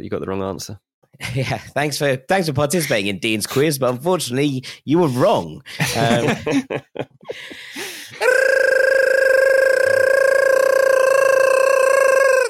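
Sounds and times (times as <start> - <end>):
speech: 0.0 - 8.4
laughter: 5.7 - 8.4
voice babbling nonsense syllables: 8.2 - 12.4.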